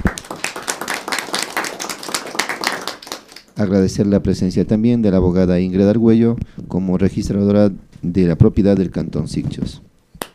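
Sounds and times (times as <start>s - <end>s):
crowd applauding: 0.0s - 3.6s
speech: 3.6s - 9.9s.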